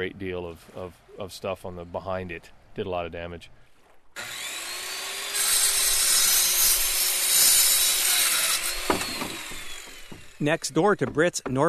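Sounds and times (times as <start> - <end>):
speech: 0.0 - 4.4, 10.4 - 11.6
sawing wood at house construction site: 4.2 - 11.6
knocks and clatters: 8.8 - 11.6.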